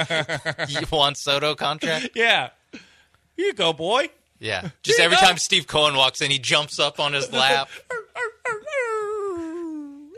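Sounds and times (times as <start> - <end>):
speech: 0.0 - 2.8, 3.4 - 8.3
person imitating a dog whining: 7.3 - 10.1.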